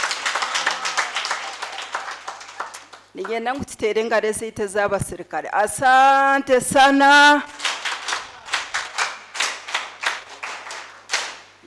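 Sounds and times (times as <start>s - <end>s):
audience clapping: 0.0s - 3.4s, 7.5s - 11.5s
speech: 3.2s - 7.6s.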